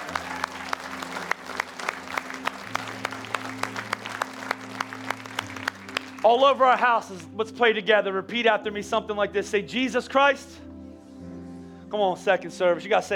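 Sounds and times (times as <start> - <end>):
audience clapping and applauding: 0.0 - 6.8
speech: 6.2 - 10.6, 11.9 - 13.1.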